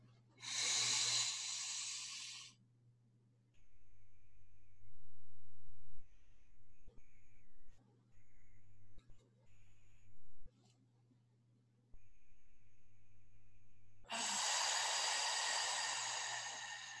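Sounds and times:
inhale through the nose: 0:00.4 - 0:02.6, 0:14.1 - 0:16.9
soft sustained tonal hum: 0:03.6 - 0:10.7, 0:12.0 - 0:16.9.

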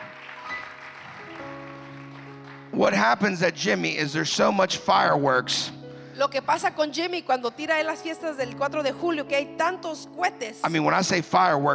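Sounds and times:
audience clapping: 0:00.0 - 0:03.3
speech: 0:02.8 - 0:11.7.

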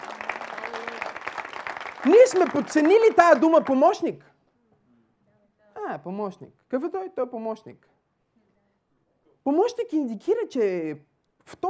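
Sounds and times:
audience applause: 0:00.0 - 0:04.1
speech: 0:02.0 - 0:04.3, 0:06.0 - 0:07.9, 0:09.4 - 0:11.6.

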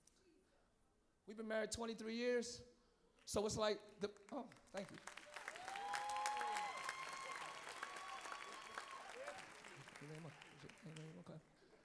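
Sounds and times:
speech: 0:01.3 - 0:02.7, 0:03.3 - 0:05.2, 0:10.0 - 0:11.5
audience applause: 0:04.6 - 0:11.5.

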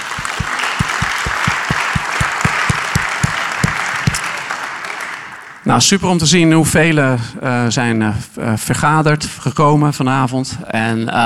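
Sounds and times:
audience applauding: 0:00.0 - 0:05.6
speech: 0:05.7 - 0:11.2.

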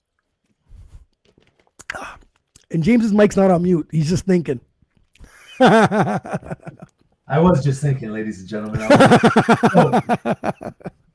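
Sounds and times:
person taking a sip of water: 0:00.0 - 0:02.7
speech: 0:01.9 - 0:04.7, 0:05.6 - 0:10.6
laughter: 0:05.3 - 0:06.9, 0:08.7 - 0:10.9.

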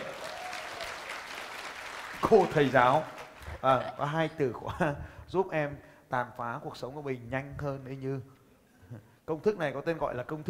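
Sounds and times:
audience applause: 0:00.0 - 0:03.8
speech: 0:02.2 - 0:10.4
laughter: 0:03.4 - 0:05.0.

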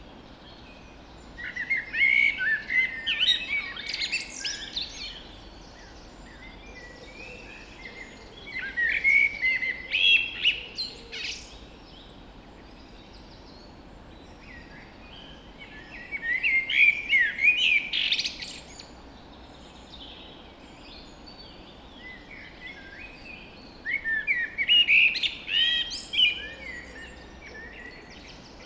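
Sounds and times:
birds singing in a dawn chorus: 0:00.0 - 0:28.6.

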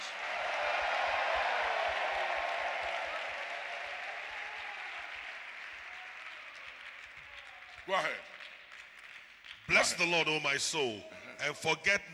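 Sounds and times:
large crowd cheering and shouting: 0:00.0 - 0:07.7
large crowd clapping: 0:00.0 - 0:10.8
speech: 0:07.9 - 0:08.3, 0:09.7 - 0:12.1.

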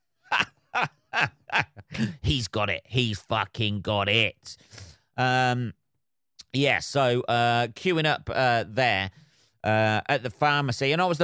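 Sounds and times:
laughter: 0:00.3 - 0:02.6
short raspy throat-clearing coughs: 0:01.9 - 0:02.2
speech: 0:02.0 - 0:05.8, 0:06.5 - 0:11.2.

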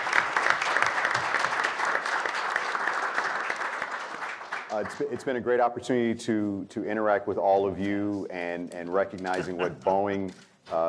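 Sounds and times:
audience applause: 0:00.0 - 0:05.1
speech: 0:04.8 - 0:10.8
laughter: 0:09.2 - 0:10.3.

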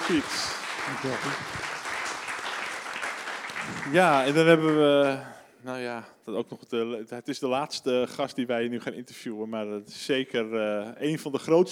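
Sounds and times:
audience applause: 0:00.0 - 0:05.3
speech: 0:00.1 - 0:01.7, 0:03.7 - 0:11.7.

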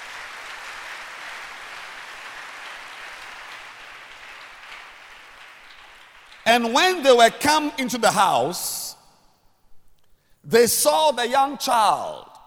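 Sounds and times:
crowd applause: 0:00.0 - 0:06.5
speech: 0:06.4 - 0:08.8, 0:10.5 - 0:12.3.

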